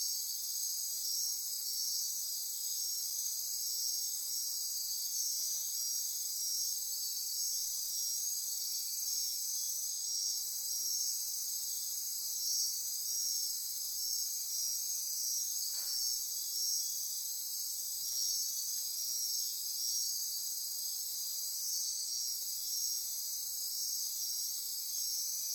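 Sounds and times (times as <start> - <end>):
insect chorus trilling: 0.0 - 25.5.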